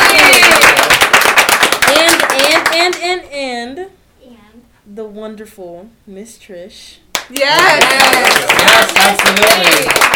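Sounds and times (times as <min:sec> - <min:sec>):
audience applause: 0:00.0 - 0:02.7, 0:07.5 - 0:10.1
speech: 0:04.9 - 0:10.1.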